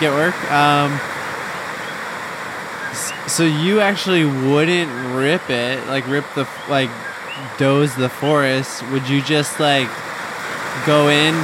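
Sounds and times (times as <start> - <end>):
speech: 0.0 - 1.2, 3.3 - 10.1, 10.8 - 11.4
heavy rain falling outside: 0.0 - 11.4.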